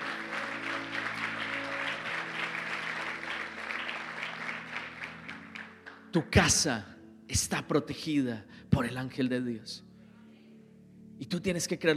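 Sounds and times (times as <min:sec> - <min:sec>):
audience applause: 0:00.0 - 0:06.0
low sustained musical drone: 0:00.0 - 0:11.9
speech: 0:06.1 - 0:09.9, 0:11.2 - 0:11.9.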